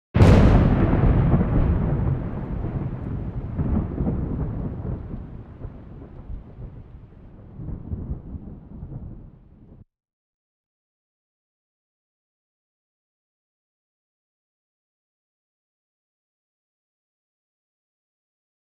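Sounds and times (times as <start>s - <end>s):
thunder: 0.2s - 9.8s.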